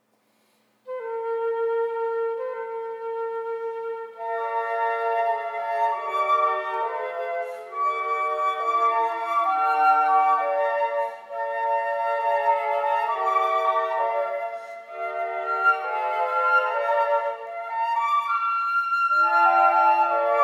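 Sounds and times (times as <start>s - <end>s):
flute quartet: 0.8s - 20.4s.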